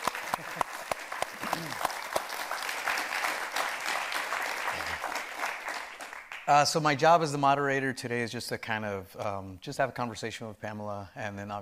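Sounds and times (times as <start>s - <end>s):
audience applause at a university event with a film director: 0.0s - 6.5s
speech: 0.4s - 0.7s, 6.5s - 11.6s.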